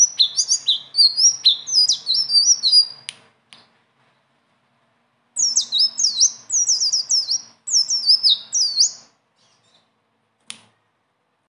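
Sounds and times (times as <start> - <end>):
leafbird singing: 0.0 - 3.1, 5.4 - 10.0.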